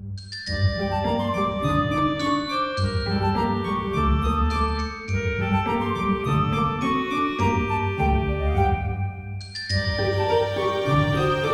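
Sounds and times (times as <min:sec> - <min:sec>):
happy song: 0:00.3 - 0:11.5.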